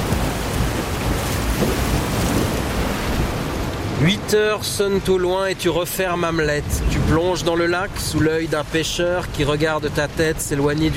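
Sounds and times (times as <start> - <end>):
ocean waves: 0.0 - 10.9
speech: 4.0 - 10.9.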